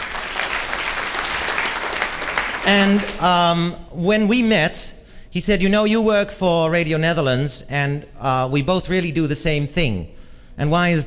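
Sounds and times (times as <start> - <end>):
audience applause greeting a guest brought on stage: 0.0 - 3.2
speech: 2.7 - 11.0.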